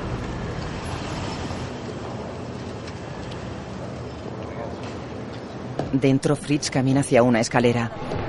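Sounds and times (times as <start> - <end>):
car engine and tyres rumbling while driving into a compound and parking: 0.0 - 5.6
speech: 5.9 - 8.1.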